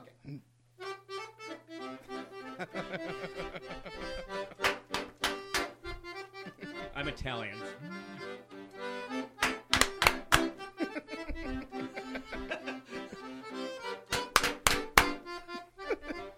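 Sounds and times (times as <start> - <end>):
accordion-style music: 0.8 - 16.3
laughter: 2.2 - 4.7, 10.6 - 13.5, 15.8 - 16.3
hand clapping along to music: 3.7 - 6.2, 9.2 - 10.8, 13.8 - 15.4
speech: 7.0 - 8.0.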